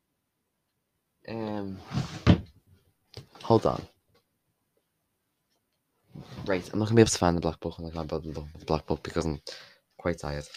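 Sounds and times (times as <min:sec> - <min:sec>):
speech: 0:01.3 - 0:02.1, 0:03.5 - 0:03.9, 0:06.4 - 0:10.5
drawer sliding with a groaning scrape: 0:01.6 - 0:02.5, 0:06.1 - 0:06.8
drawer shutting with a thump: 0:01.9 - 0:02.5.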